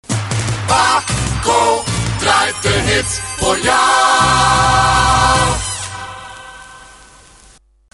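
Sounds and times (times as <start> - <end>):
jingle: 0.6 - 5.7.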